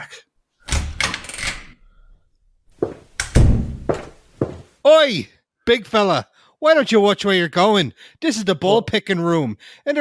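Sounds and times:
wooden door opening with heavy thunks and knocks: 0:00.7 - 0:02.2, 0:02.8 - 0:04.6
speech: 0:04.9 - 0:09.9.

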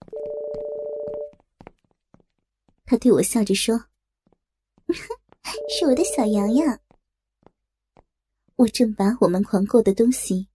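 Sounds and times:
mobile phone ringing: 0:00.1 - 0:01.3, 0:05.5 - 0:06.3
speech: 0:02.9 - 0:03.9, 0:04.9 - 0:06.8, 0:08.6 - 0:10.5.

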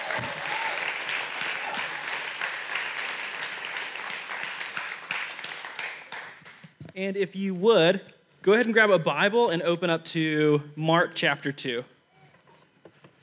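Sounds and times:
crowd applauding: 0:00.0 - 0:06.6
speech: 0:07.0 - 0:11.9.

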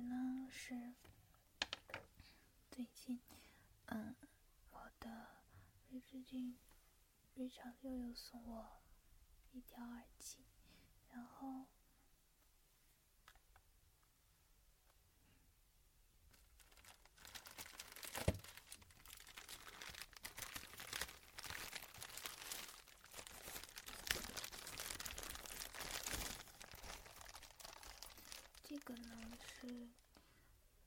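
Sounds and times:
speech: 0:00.5 - 0:01.0, 0:02.8 - 0:06.7, 0:07.4 - 0:08.8, 0:09.5 - 0:10.5, 0:11.1 - 0:11.8
bubble wrap crinkling as it is handled: 0:16.3 - 0:30.2.

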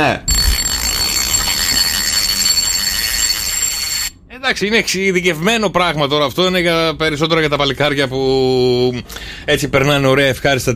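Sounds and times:
speech: 0:00.0 - 0:00.3, 0:04.4 - 0:10.7
fire detector alarm beeping: 0:00.0 - 0:04.2.

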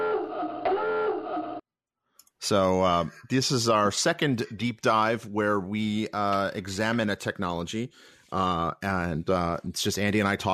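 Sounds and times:
submarine dive alarm klaxon: 0:00.0 - 0:01.6
speech: 0:02.5 - 0:10.5.

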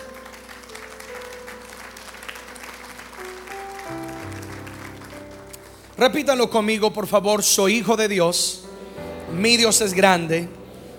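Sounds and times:
audience applauding: 0:00.0 - 0:06.4
speech: 0:06.0 - 0:08.6, 0:09.4 - 0:10.6.

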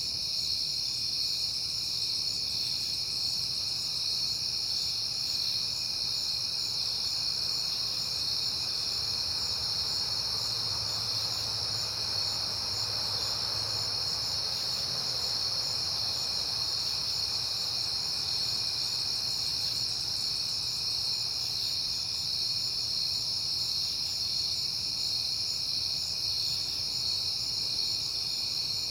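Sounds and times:
crickets chirping in a shrill chorus: 0:00.0 - 0:28.9
passing traffic hiss: 0:06.8 - 0:21.5.

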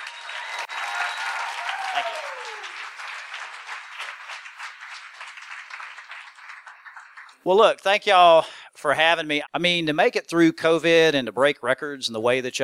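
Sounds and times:
audience applause: 0:00.0 - 0:07.6
speech: 0:02.0 - 0:02.3, 0:07.4 - 0:12.6.

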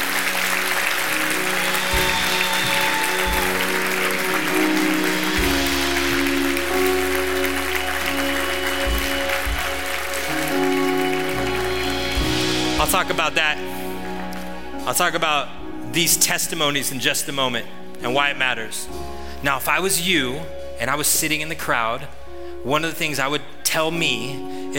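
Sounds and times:
church audience applauding: 0:00.0 - 0:15.2
speech: 0:13.1 - 0:13.7, 0:14.9 - 0:24.7.

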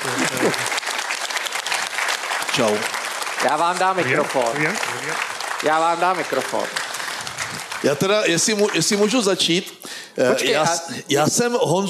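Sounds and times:
laughter: 0:00.0 - 0:00.8
audience applause: 0:00.0 - 0:09.3
speech: 0:02.6 - 0:06.8, 0:07.8 - 0:11.8.

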